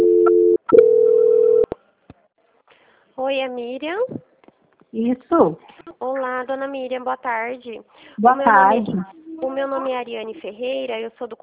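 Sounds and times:
telephone line tones while a call is being transferred: 0:00.0 - 0:01.7
speech: 0:03.3 - 0:04.2, 0:04.9 - 0:11.4.

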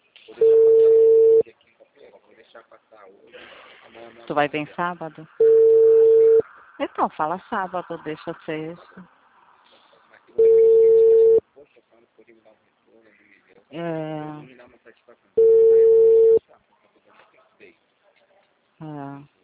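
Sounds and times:
telephone busy signal: 0:00.4 - 0:01.4, 0:05.4 - 0:06.4, 0:10.4 - 0:11.4, 0:15.4 - 0:16.4
speech: 0:02.6 - 0:05.7, 0:06.8 - 0:09.1, 0:13.8 - 0:14.6.

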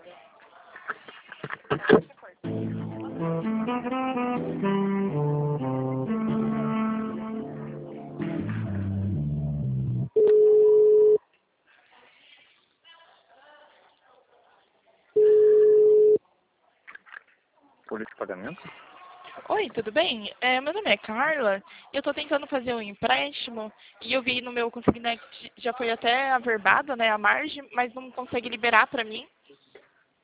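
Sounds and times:
speech: 0:01.9 - 0:02.1, 0:18.5 - 0:18.8, 0:19.6 - 0:29.4
stepped electronic telephone hold melody during call transfer: 0:02.5 - 0:10.2
long steady mid-pitched telephone beeps: 0:10.2 - 0:11.2, 0:15.2 - 0:16.2.

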